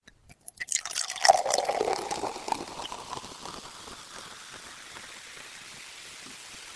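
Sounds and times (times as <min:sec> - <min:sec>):
bottle: 0:00.0 - 0:06.6.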